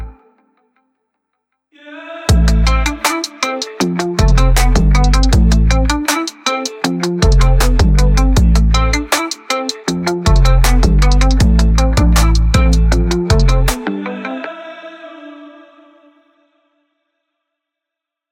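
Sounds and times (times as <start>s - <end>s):
trap beat: 2.3s - 13.9s.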